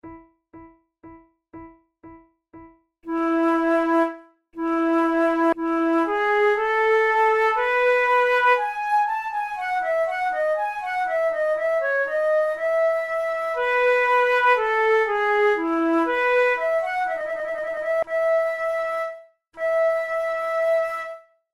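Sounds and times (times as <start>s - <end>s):
flute prelude: 3.1s - 21.5s.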